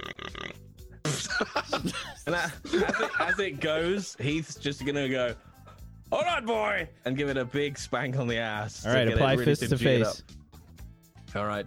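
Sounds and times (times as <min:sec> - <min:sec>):
voice imitating a pig grunting: 0:00.0 - 0:00.8
laughter: 0:01.1 - 0:04.1
speech: 0:01.4 - 0:05.5, 0:06.1 - 0:10.4, 0:11.3 - 0:11.6.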